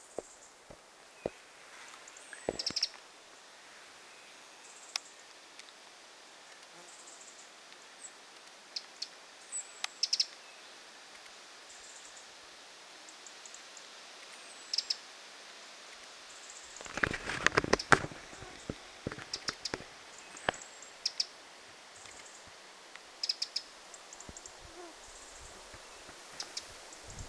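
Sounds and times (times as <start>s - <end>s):
Eurasian wren calling with very high thin notes: 1.2s - 3.0s, 9.9s - 10.4s, 16.6s - 22.5s, 23.2s - 27.2s.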